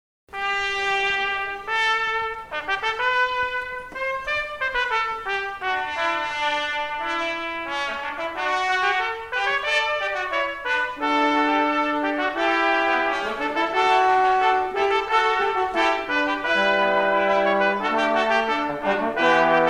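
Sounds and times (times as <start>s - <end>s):
fanfare: 0.3s - 19.6s.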